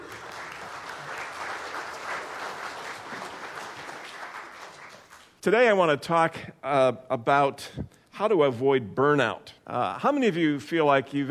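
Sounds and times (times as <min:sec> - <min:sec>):
church congregation clapping to welcome a pastor to the pulpit: 0:00.0 - 0:05.4
speech: 0:05.4 - 0:11.3.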